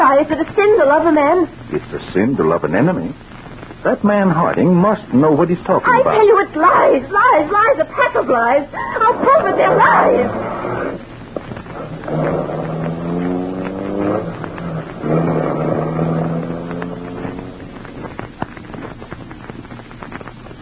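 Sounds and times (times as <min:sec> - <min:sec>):
speech: 0:00.1 - 0:11.1
car driving off: 0:11.6 - 0:18.3.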